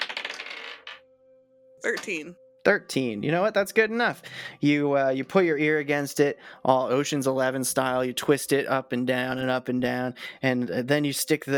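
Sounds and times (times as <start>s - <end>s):
dice clattering across a hard surface: 0.0s - 1.0s
speech: 1.8s - 11.5s.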